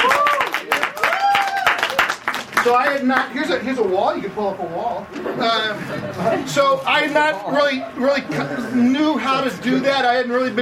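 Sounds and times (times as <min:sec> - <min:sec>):
audience applause welcoming a woman at a church gathering: 0:00.0 - 0:03.0
speech: 0:02.6 - 0:10.6
laughter: 0:05.1 - 0:09.8.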